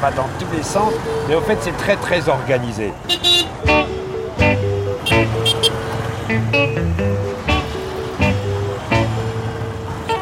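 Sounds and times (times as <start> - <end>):
speech: 0.0 - 3.9, 6.3 - 7.4
motorcycle taxis in busy street traffic: 0.0 - 10.2
horn toots and beeps: 3.1 - 9.2.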